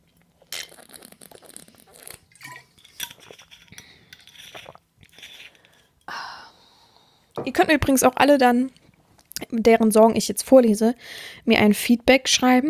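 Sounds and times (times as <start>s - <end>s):
person taking a sip of a drink: 0.0s - 7.4s
speech: 7.4s - 8.8s, 9.5s - 12.6s.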